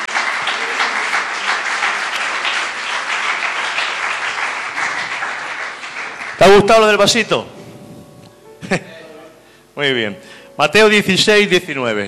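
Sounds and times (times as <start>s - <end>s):
audience applause: 0.0s - 6.9s
speech: 6.5s - 7.6s, 9.8s - 12.0s.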